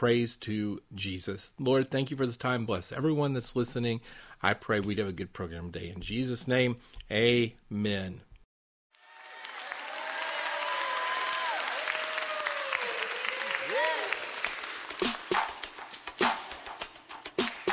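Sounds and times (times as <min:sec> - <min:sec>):
speech: 0:00.0 - 0:08.3
audience clapping hands: 0:08.9 - 0:16.5, 0:17.4 - 0:17.7.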